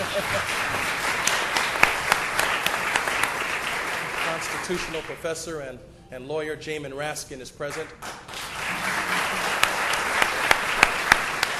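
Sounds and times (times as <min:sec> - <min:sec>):
audience applause: 0:00.0 - 0:05.2, 0:08.0 - 0:11.5
speech: 0:00.2 - 0:00.9, 0:04.5 - 0:08.2.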